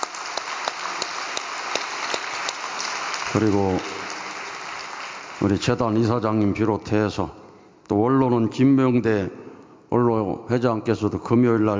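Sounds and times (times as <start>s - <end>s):
audience applause: 0.0s - 6.0s
speech: 3.3s - 4.0s, 5.4s - 11.7s.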